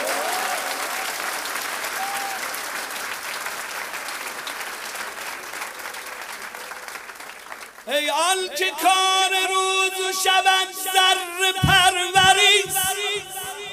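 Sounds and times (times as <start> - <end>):
crowd clapping: 0.0 - 8.0, 11.6 - 13.7
speech: 7.9 - 13.3.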